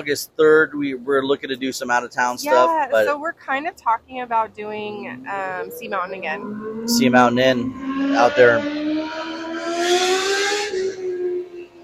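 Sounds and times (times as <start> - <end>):
speech: 0.0 - 10.2
sport motorcycle passing by: 5.0 - 11.8.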